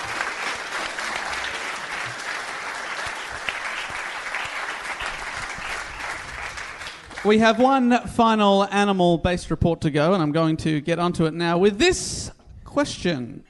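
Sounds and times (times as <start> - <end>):
audience applause: 0.0 - 7.7
speech: 7.2 - 13.4.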